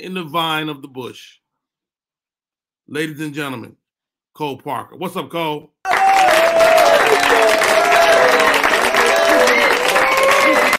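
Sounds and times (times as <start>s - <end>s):
speech: 0.0s - 1.4s, 2.9s - 3.8s, 4.4s - 9.7s
audience applause: 5.9s - 10.7s.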